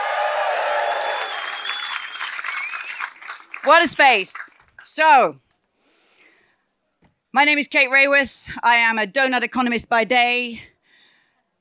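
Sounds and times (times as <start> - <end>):
audience applauding in a festival circus big top: 0.0 - 4.9
speech: 3.6 - 5.4, 7.4 - 10.7.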